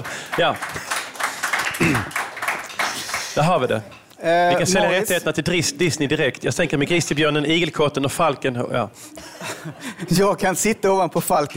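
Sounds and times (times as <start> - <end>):
speech: 0.0 - 0.8, 3.4 - 11.5
applause: 0.0 - 3.7
laughter: 9.0 - 10.7.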